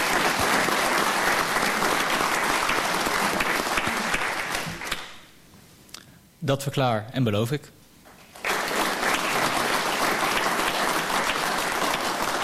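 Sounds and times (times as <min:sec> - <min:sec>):
applause: 0:00.0 - 0:05.3, 0:08.1 - 0:12.4
speech: 0:06.4 - 0:07.8.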